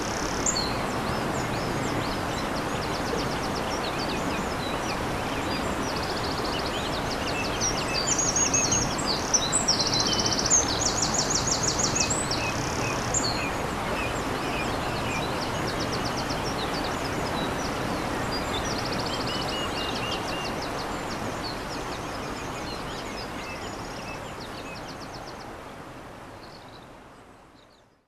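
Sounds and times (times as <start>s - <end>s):
Eurasian wren song beside a stream: 0.0s - 25.4s.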